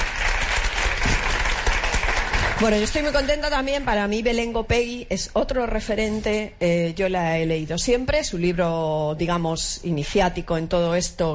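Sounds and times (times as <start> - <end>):
crowd applause: 0.0 - 2.9
speech: 2.6 - 11.3.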